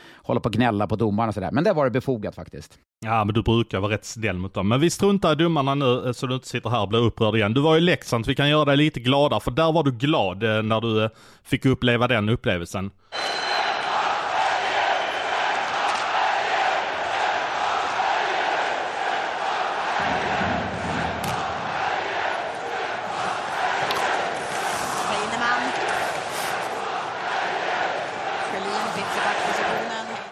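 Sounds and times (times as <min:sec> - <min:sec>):
speech: 0:00.3 - 0:13.5
sports crowd chanting supporter songs: 0:13.2 - 0:30.3.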